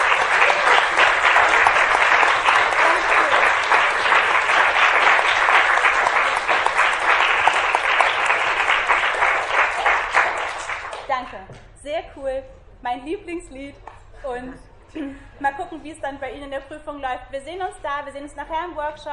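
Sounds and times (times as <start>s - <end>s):
audience applause: 0.0s - 11.1s
speech: 15.8s - 19.1s.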